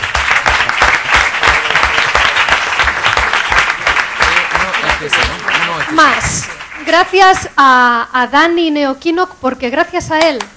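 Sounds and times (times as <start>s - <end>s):
audience applause: 0.0s - 7.5s
speech: 5.9s - 10.5s.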